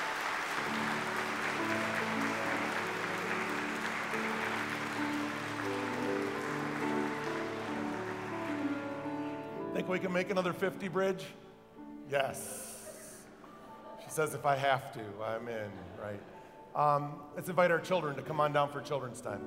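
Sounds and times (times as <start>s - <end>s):
audience applause: 0.0s - 10.0s
speech: 9.8s - 11.4s, 12.1s - 12.7s, 14.0s - 19.4s.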